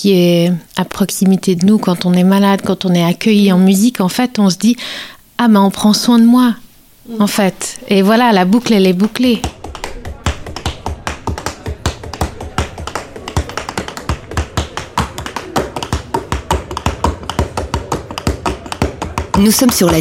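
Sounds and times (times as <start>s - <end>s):
speech: 0.0s - 9.6s, 19.4s - 20.0s
tap dancing at an outdoor jazz concert on a hospital terrace in Geneva: 8.5s - 20.0s.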